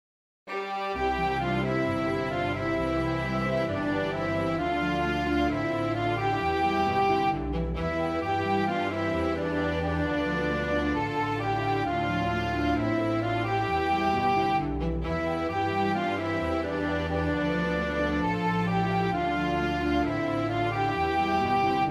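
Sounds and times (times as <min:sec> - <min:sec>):
dreamy orchestra: 0:00.5 - 0:21.9.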